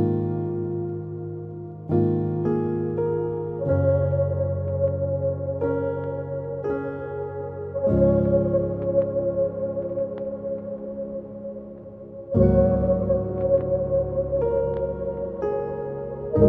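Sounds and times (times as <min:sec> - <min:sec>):
soft upright piano playing slow sustained chords: 0:00.0 - 0:16.4.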